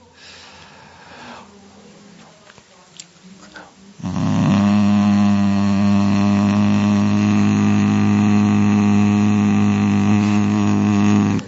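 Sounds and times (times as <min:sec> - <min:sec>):
deep humming vibration: 0:04.0 - 0:11.4.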